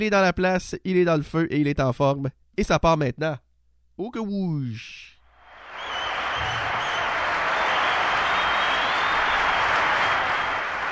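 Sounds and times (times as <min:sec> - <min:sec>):
speech: 0:00.0 - 0:03.4, 0:04.0 - 0:05.2
audience applause: 0:05.5 - 0:10.9.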